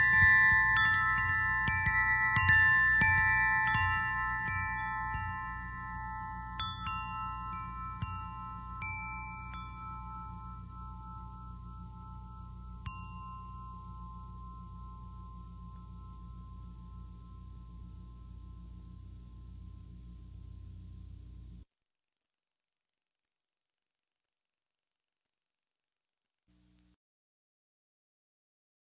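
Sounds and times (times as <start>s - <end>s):
chime: 0.0s - 20.6s.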